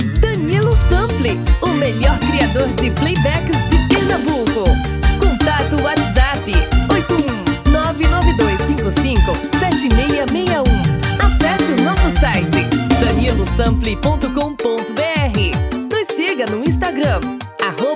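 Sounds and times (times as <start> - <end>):
female voice: 0.2 - 17.9.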